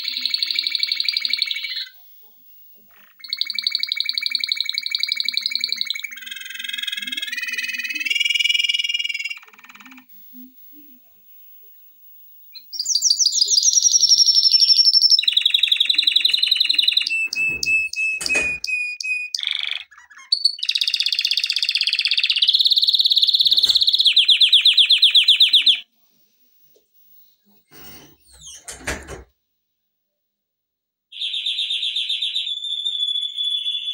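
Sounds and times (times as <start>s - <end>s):
canary singing: 0.0s - 2.0s, 2.8s - 11.0s, 12.4s - 25.8s, 31.1s - 33.9s.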